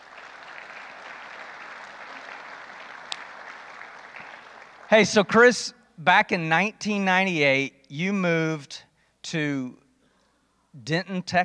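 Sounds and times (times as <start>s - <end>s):
audience applause at a church service welcoming a speaker: 0.0s - 5.1s
speech: 4.9s - 9.8s, 10.8s - 11.4s.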